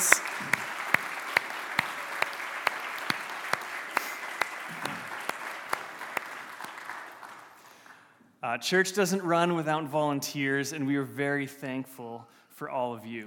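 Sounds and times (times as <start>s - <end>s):
audience applause: 0.0s - 8.0s
speech: 8.5s - 13.2s.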